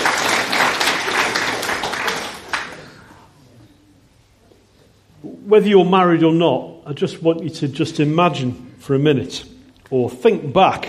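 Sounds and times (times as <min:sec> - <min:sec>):
round of applause: 0:00.0 - 0:03.2
speech: 0:05.5 - 0:10.8.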